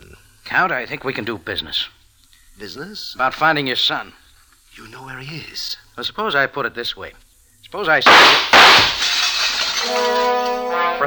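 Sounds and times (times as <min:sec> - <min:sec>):
speech: 0:00.5 - 0:02.0, 0:02.6 - 0:04.2, 0:04.8 - 0:09.0, 0:09.9 - 0:11.0
glass shattering: 0:08.1 - 0:11.0.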